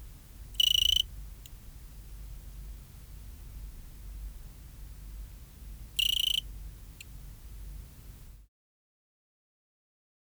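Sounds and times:
Eugrylloides pipiens cricket chirping: 0.5s - 1.2s, 5.8s - 8.3s.

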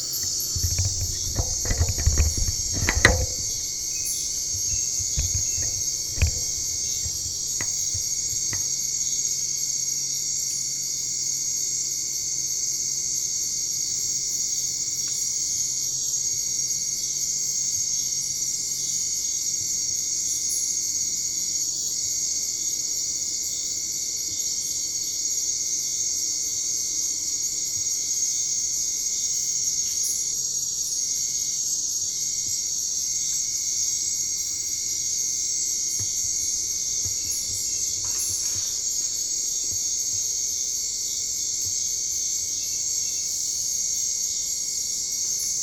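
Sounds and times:
European mole cricket churring: 0.0s - 8.7s, 33.2s - 41.6s
insect chorus: 0.0s - 9.2s, 26.9s - 45.6s.

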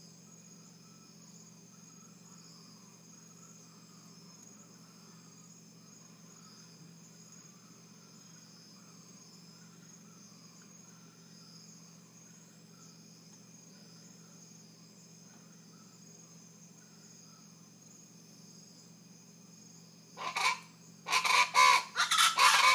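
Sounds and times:
rufous-vented chachalacas cackling chorus: 20.2s - 22.7s.

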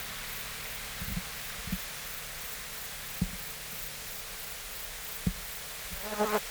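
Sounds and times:
steppe grasshopper Chorthippus dorsatus rasping song: 0.0s - 6.4s.

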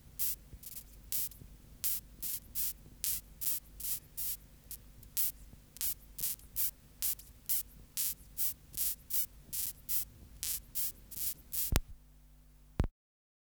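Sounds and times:
grasshopper stridulation: 0.2s - 11.9s
sharp clicks: 11.6s - 12.0s.

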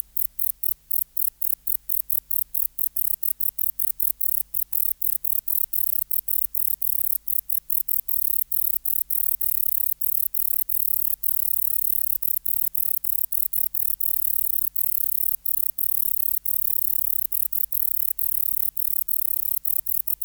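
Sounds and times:
bush-cricket song: 0.0s - 20.2s.

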